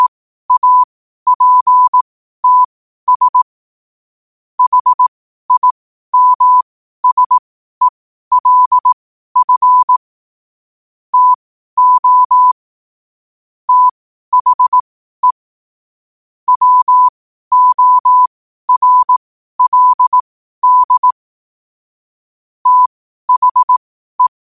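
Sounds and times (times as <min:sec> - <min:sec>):
morse code at 5 wpm: 0:00.0 - 0:03.5, 0:04.6 - 0:10.0, 0:11.1 - 0:12.6, 0:13.7 - 0:15.4, 0:16.5 - 0:21.2, 0:22.6 - 0:24.4.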